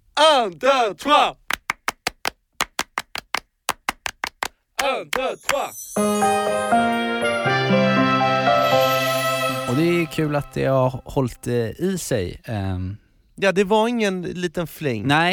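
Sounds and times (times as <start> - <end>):
speech: 0.2 - 1.4, 4.8 - 8.4, 9.7 - 15.3
French-style rhythmic hand clapping: 1.5 - 5.9.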